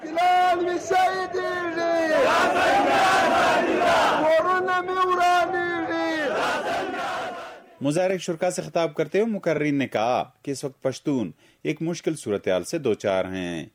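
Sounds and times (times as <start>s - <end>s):
protest crowd chanting slogans: 0.0s - 7.8s
speech: 7.8s - 13.7s.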